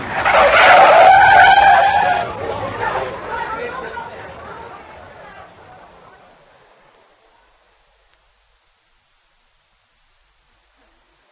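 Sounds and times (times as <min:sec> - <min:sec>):
car tires screeching in a skid: 0:00.0 - 0:06.4
voices: 0:02.0 - 0:08.1.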